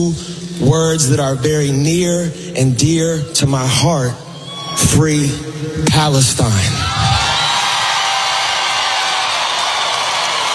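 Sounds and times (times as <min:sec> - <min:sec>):
speech: 0:00.0 - 0:04.2, 0:04.8 - 0:07.0
stadium crowd cheering: 0:06.6 - 0:10.5.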